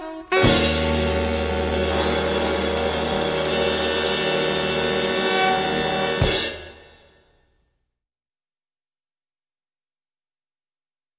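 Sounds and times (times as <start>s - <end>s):
fanfare: 0.2s - 7.3s.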